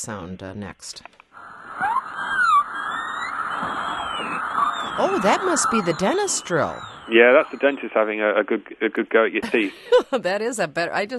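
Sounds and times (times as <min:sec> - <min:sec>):
speech: 0:00.0 - 0:01.2, 0:03.6 - 0:11.1
hum of power lines: 0:01.4 - 0:08.2
laughter: 0:09.4 - 0:10.2.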